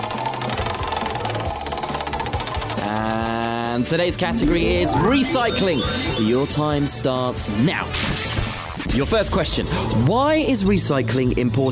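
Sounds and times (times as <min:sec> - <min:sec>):
game show prize wheel spinning: 0:00.0 - 0:07.0
speech: 0:03.8 - 0:11.6.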